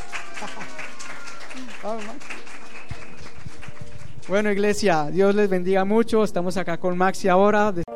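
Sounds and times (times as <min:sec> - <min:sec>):
audience applauding: 0:00.0 - 0:04.8
speech: 0:00.4 - 0:00.9, 0:01.6 - 0:02.6, 0:04.3 - 0:07.8.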